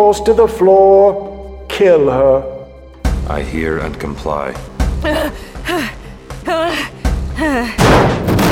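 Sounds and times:
speech: 0.0 - 2.6, 3.3 - 5.9
person gasping and grunting: 5.0 - 7.8.

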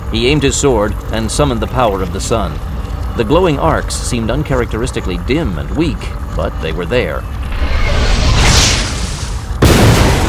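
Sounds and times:
speech: 0.1 - 7.4
plasma blast explosion: 7.5 - 10.2.

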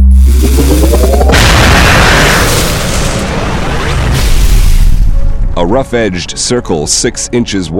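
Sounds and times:
experimental weapon rising whine: 0.0 - 3.0
experimental weapon roaring blast burning through a wooden target: 0.0 - 5.2
speech: 5.6 - 7.7.

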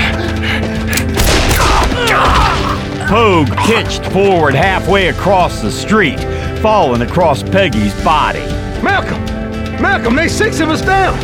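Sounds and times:
gunfire in a street shootout: 0.9 - 2.6
speech: 3.1 - 11.2.

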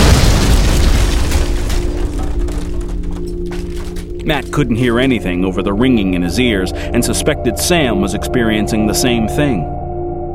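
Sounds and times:
dynamite explosion: 0.0 - 3.3
speech: 4.3 - 9.8.

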